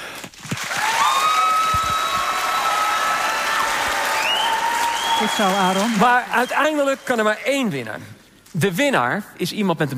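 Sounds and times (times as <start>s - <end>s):
large audience applause: 0.5s - 7.4s
speech: 5.2s - 9.9s.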